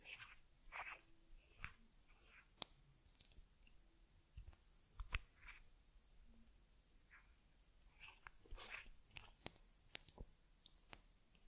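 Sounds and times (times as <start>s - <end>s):
soft rubbing and brushing of a teddy's ear: 0.0s - 3.4s, 4.4s - 5.7s, 7.1s - 11.4s
quiet low hum: 0.0s - 11.4s.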